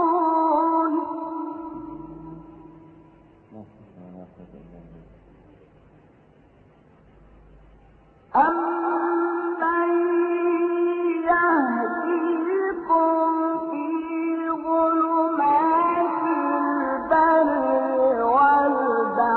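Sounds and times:
Quran recitation: 0.0s - 2.7s, 3.5s - 5.1s, 8.4s - 19.3s.

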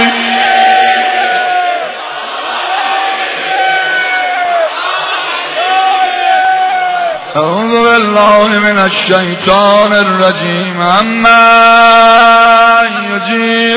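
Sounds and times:
crowd shouting in unison: 0.2s - 7.4s
speech: 8.2s - 13.7s.

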